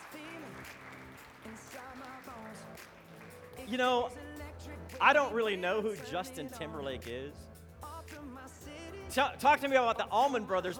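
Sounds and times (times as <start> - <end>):
crowd clapping: 0.0 - 3.7
speech: 3.7 - 4.2, 5.0 - 7.5, 9.1 - 10.7.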